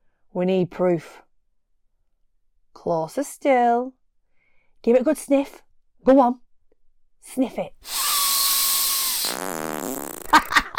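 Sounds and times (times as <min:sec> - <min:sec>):
speech: 0:00.3 - 0:01.2, 0:02.8 - 0:04.0, 0:04.8 - 0:06.4, 0:07.2 - 0:08.0
person farting: 0:08.3 - 0:10.7.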